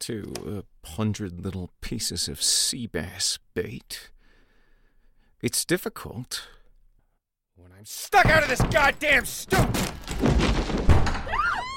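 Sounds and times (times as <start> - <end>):
speech: 0.0 - 4.2, 5.4 - 6.6, 7.6 - 11.2
door crashing open against wall: 8.2 - 11.4.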